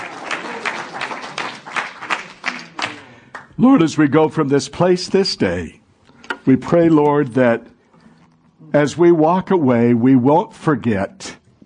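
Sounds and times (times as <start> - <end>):
church congregation applauding during a worship service: 0.0 - 3.8
speech: 3.6 - 5.8, 6.4 - 7.7, 8.7 - 11.4.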